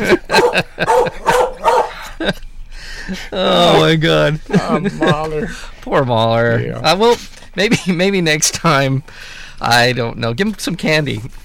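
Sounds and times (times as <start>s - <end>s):
dog barking and yipping while getting its teeth brushed: 0.0s - 2.1s
laughter: 0.0s - 5.8s, 7.6s - 8.2s
speech: 0.1s - 0.7s, 3.9s - 11.4s.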